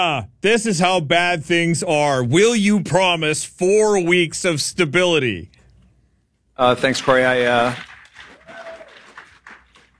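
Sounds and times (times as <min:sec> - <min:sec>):
speech: 0:00.0 - 0:05.6, 0:06.6 - 0:07.9
audience clapping: 0:06.8 - 0:09.9.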